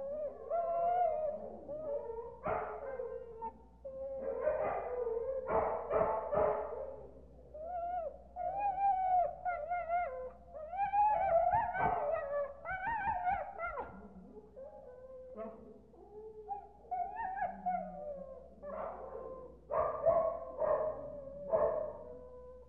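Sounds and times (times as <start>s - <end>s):
dog whining and yelping: 0.0s - 5.7s, 7.6s - 19.6s
dog barking: 2.4s - 2.9s, 4.2s - 7.0s, 11.6s - 12.3s, 18.7s - 22.1s.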